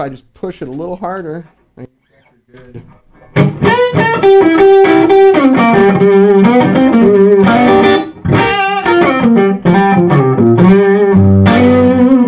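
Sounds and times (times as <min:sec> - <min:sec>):
speech: 0:00.0 - 0:03.6, 0:04.2 - 0:07.2
overdriven electric guitar riff through a pushed EL34 tube amp: 0:03.2 - 0:12.2.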